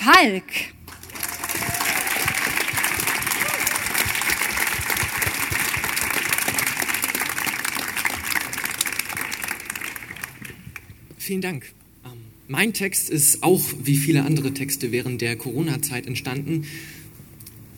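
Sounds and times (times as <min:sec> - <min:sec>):
speech: 0:00.0 - 0:00.8, 0:11.3 - 0:17.0
audience applause for a poet: 0:00.9 - 0:10.9.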